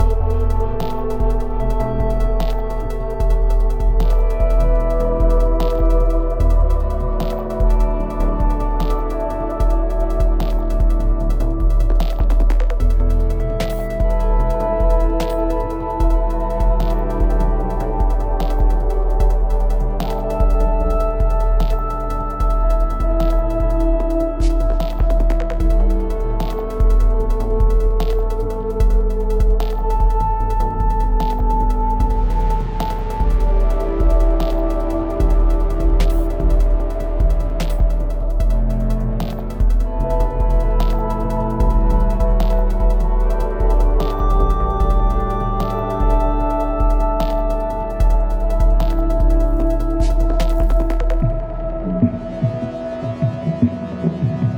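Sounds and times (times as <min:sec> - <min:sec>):
theme music: 0:00.0 - 0:54.5.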